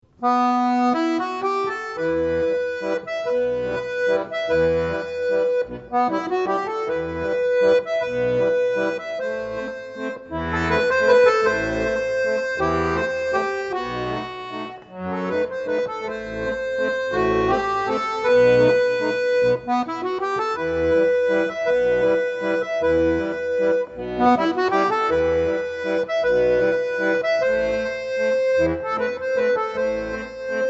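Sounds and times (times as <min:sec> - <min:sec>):
accordion arrangement: 0:00.0 - 0:30.6.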